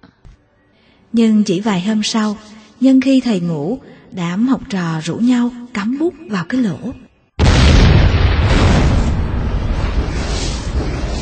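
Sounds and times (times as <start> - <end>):
speech: 1.1 - 7.0
huge explosion collapsing a cave: 7.4 - 11.2.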